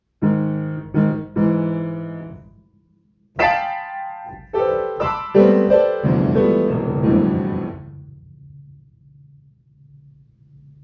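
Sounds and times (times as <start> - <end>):
piano playing: 0.2 - 2.6, 3.4 - 9.0.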